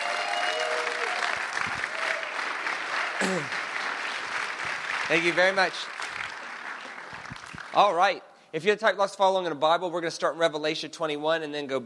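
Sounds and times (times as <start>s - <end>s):
audience applause welcoming a pastor: 0.0s - 7.8s
speech: 3.2s - 3.6s, 5.1s - 6.0s, 7.8s - 11.8s.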